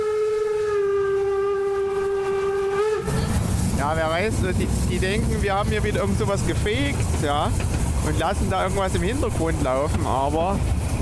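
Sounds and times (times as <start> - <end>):
steam train whistle: 0.0 - 3.5
moving steam train rumbling and hissing: 0.0 - 11.0
speech: 3.9 - 11.0.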